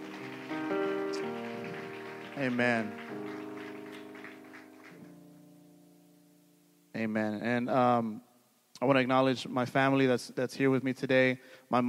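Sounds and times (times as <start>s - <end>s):
audience applause: 0.0s - 5.1s
speech: 2.4s - 3.2s, 7.0s - 11.8s.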